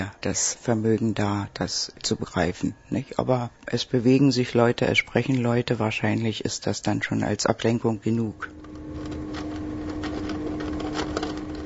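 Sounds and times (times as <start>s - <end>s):
speech: 0.1s - 8.6s
black mouse rustling in wood shavings and paper in a plastic box: 8.5s - 11.6s.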